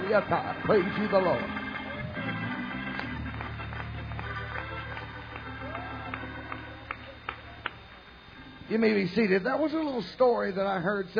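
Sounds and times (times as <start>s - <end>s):
crowd clapping hands: 0.0s - 8.6s
low hum: 0.0s - 11.1s
speech: 0.1s - 1.6s, 8.7s - 11.1s.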